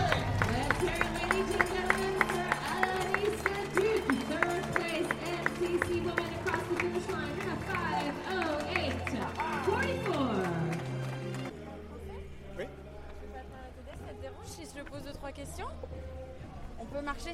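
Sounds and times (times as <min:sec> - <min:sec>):
crowd applauding: 0:00.0 - 0:11.6.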